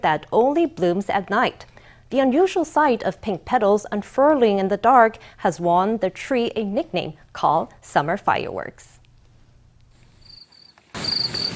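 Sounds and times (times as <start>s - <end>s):
speech: 0.0s - 9.0s
insects chirping at night: 10.0s - 11.5s.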